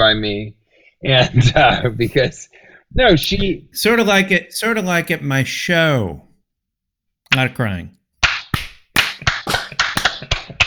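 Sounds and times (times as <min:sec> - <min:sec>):
speech: 0:00.0 - 0:06.3, 0:07.3 - 0:08.0
hand clapping fast then slowing down: 0:08.5 - 0:10.6.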